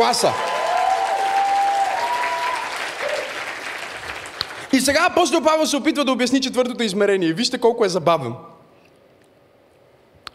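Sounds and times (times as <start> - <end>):
speech: 0.0 - 0.5, 4.7 - 8.5
audience applause: 0.0 - 4.9.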